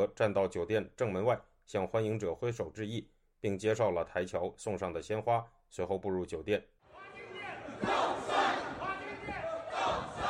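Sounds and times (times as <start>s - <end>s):
speech: 0.0s - 6.7s
crowd of Taiwanese expatriates chanting slogans outside a hotel in San Francisco: 6.9s - 10.2s.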